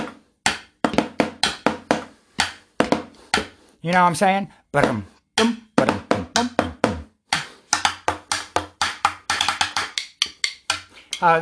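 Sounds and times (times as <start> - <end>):
improvised drumming on pots and pans: 0.0 - 3.6, 4.8 - 11.4
speech: 3.8 - 6.5, 11.2 - 11.4.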